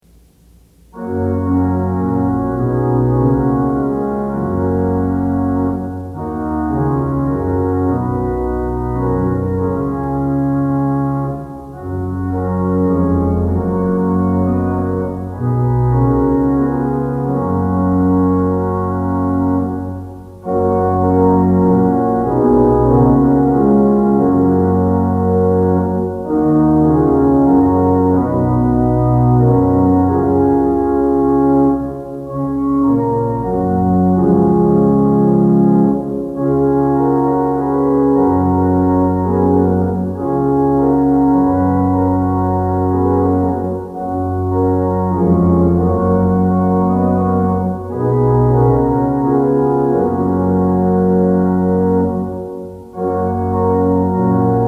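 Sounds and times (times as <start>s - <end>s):
organ music for worship services: 0.9s - 54.6s.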